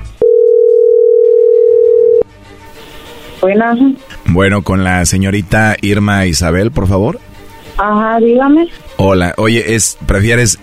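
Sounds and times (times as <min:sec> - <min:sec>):
telephone line tone: 0:00.2 - 0:02.2
speech: 0:03.4 - 0:10.6.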